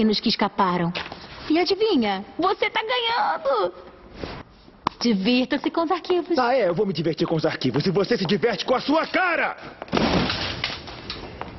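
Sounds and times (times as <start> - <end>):
speech: 0.0 - 4.3, 5.0 - 10.4
door slamming shut: 9.9 - 10.8.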